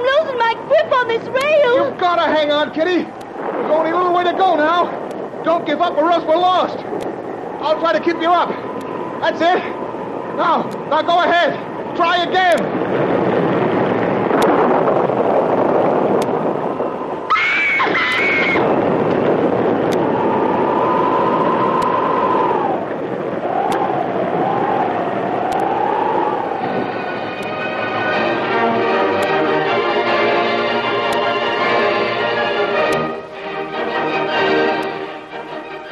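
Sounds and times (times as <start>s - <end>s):
heavy washes of water: 0.0s - 35.9s
stormy sea and wind roaring: 0.0s - 35.9s
speech: 1.0s - 8.6s, 9.2s - 9.8s, 10.4s - 13.0s
high whistling and creaking tones: 16.7s - 18.7s, 19.8s - 28.4s.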